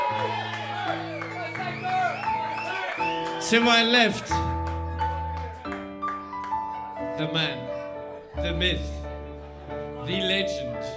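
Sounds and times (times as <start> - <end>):
audience cheering: 0.0 - 4.4
audience applause: 0.0 - 7.0
speech: 3.5 - 4.5, 7.2 - 7.7, 8.4 - 9.0, 10.1 - 10.9.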